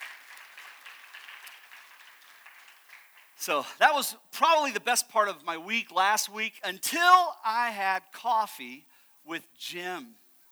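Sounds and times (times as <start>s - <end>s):
crowd applauding: 0.0s - 4.6s
speech: 3.4s - 10.2s.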